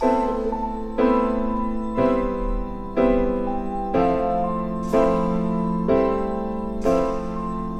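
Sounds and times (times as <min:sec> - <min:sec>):
sad piano loop: 0:00.0 - 0:07.7.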